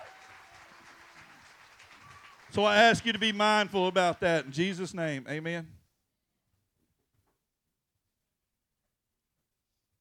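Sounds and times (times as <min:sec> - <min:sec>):
audience round of applause: 0:00.0 - 0:05.3
speech: 0:02.5 - 0:05.8.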